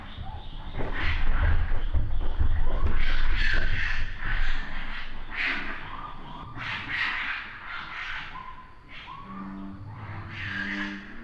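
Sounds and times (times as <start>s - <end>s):
raccoon giving harsh noisy screeching bursts: 0.3s - 11.2s.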